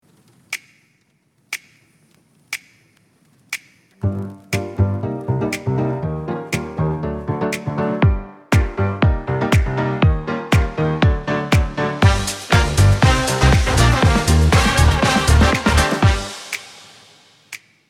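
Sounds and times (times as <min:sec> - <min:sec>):
music: 0:04.0 - 0:17.8.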